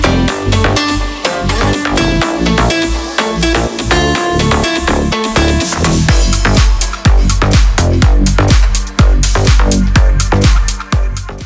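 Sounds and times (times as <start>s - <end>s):
club bass: 0.0s - 11.4s.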